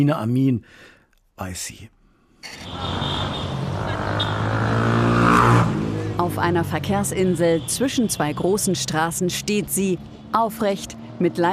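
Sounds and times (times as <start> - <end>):
speech: 0.0 - 3.4, 6.3 - 11.5
steady roar of motor traffic: 2.4 - 11.5.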